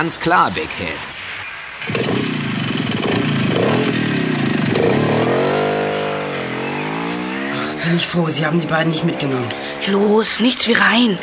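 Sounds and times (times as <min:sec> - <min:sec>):
speech: 0:00.0 - 0:01.2, 0:07.8 - 0:11.2
motorcycle starting up and driving off: 0:01.8 - 0:11.2.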